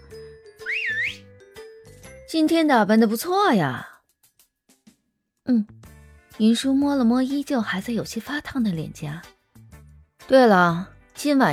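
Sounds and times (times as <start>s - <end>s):
whistle: 0.6s - 1.3s
speech: 2.3s - 3.9s, 5.5s - 5.8s, 6.4s - 9.4s, 10.3s - 11.5s.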